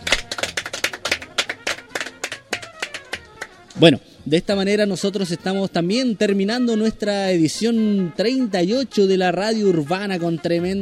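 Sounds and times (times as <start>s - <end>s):
applause for the band: 0.0s - 3.5s
speech: 3.8s - 10.7s.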